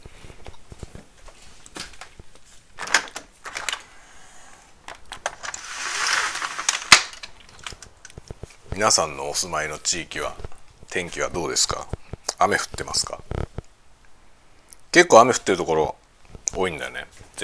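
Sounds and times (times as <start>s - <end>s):
window unlatched and slid open: 5.3s - 7.3s
speech: 8.8s - 13.3s, 15.0s - 16.0s, 16.6s - 17.4s.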